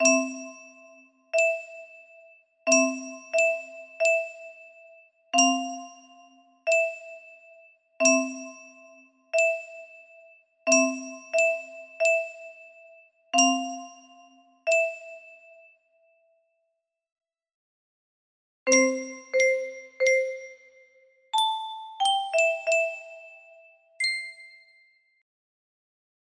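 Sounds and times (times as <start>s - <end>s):
horror movie music box melody: 0.0s - 2.0s, 2.7s - 4.8s, 5.4s - 10.1s, 10.7s - 12.8s, 13.4s - 15.5s, 18.7s - 24.8s.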